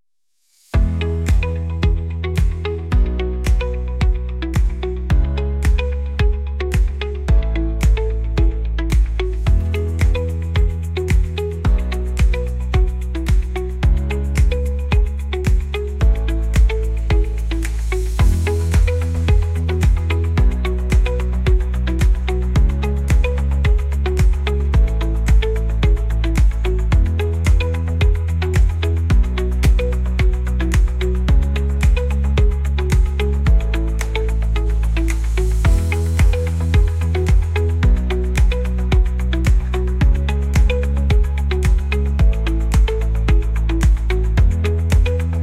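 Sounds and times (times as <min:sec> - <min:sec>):
disco drone: 0:00.7 - 0:45.4.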